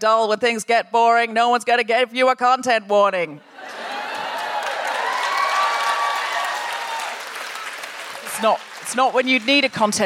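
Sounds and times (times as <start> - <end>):
speech: 0.0 - 3.8, 8.4 - 10.0
laughter: 3.4 - 5.2
audience applause: 3.6 - 10.0.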